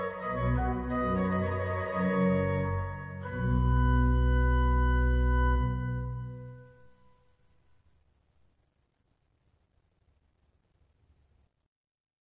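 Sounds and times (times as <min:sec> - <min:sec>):
organ trio piece: 0:00.0 - 0:06.8.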